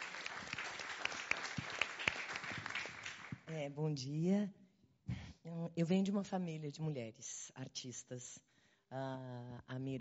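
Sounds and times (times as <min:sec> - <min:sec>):
audience applause: 0:00.0 - 0:03.4
speech: 0:03.5 - 0:04.6, 0:05.5 - 0:09.9.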